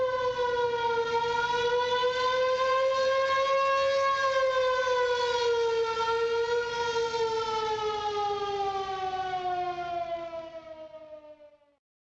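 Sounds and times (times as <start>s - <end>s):
fire siren: 0.0s - 11.8s.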